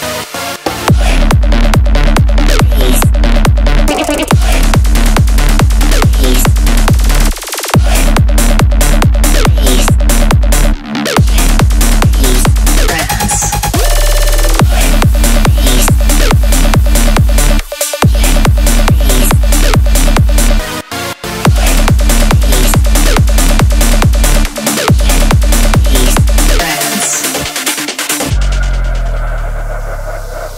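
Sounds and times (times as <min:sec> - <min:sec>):
loud trance music: 0:00.0 - 0:30.5
pulsing bass: 0:00.7 - 0:30.5
four-on-the-floor kick drum: 0:00.9 - 0:12.9, 0:13.6 - 0:20.6, 0:21.5 - 0:26.7.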